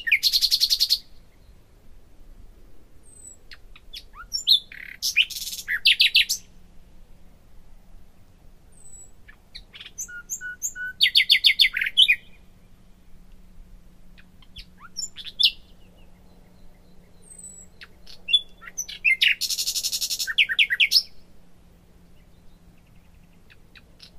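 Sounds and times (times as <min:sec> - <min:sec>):
faint low hum: 0:00.0 - 0:24.1
common nightingale singing: 0:03.1 - 0:06.4, 0:08.8 - 0:12.4, 0:16.5 - 0:21.1.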